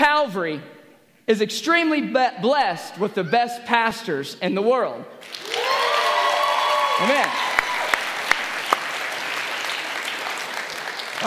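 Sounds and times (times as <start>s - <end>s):
speech: 0.2s - 5.7s, 7.0s - 7.5s
audience clapping: 5.2s - 11.2s.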